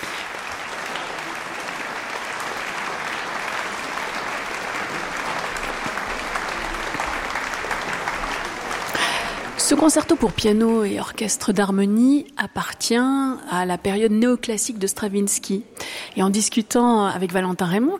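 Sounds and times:
concert audience applauding for encores at a festival concert: 0.0s - 11.0s
speech: 9.7s - 17.9s.

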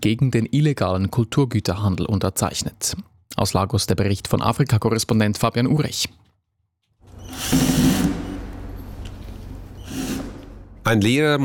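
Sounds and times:
speech: 0.0s - 6.3s, 7.3s - 8.2s, 10.8s - 11.4s
power drill backing screws out of a wooden crate in a Lagos museum hall: 7.1s - 10.7s.

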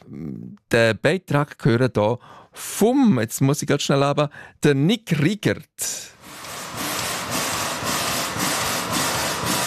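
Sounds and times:
speech: 0.1s - 6.2s
steam locomotive hissing and puffing: 6.3s - 9.6s.

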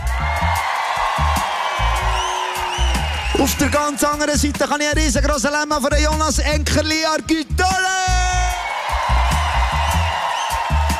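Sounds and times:
whoops and shouts: 0.0s - 3.8s, 8.3s - 10.9s
concert crowd applauding and cheering: 0.0s - 5.5s, 7.4s - 10.9s
low thumping music or drum hits: 0.0s - 10.9s
speech: 3.4s - 7.8s.

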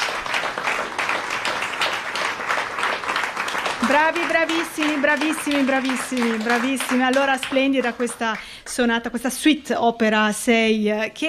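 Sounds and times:
audience applause after concert performance: 0.0s - 8.3s
speech: 3.9s - 11.2s.

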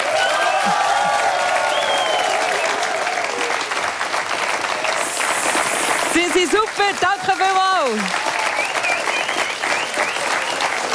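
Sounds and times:
whistles and cheers: 0.0s - 3.7s, 8.1s - 10.9s
live audience applause: 0.0s - 10.9s
speech: 6.4s - 8.3s.

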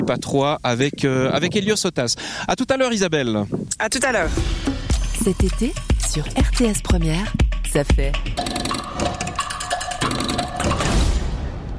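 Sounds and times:
speech: 0.1s - 9.1s
clock ticking: 5.2s - 10.9s.

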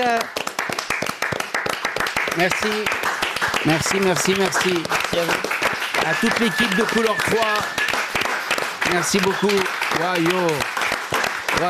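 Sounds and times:
speech: 0.0s - 0.4s, 2.4s - 7.9s, 8.8s - 10.7s
audience applause: 0.0s - 11.6s.

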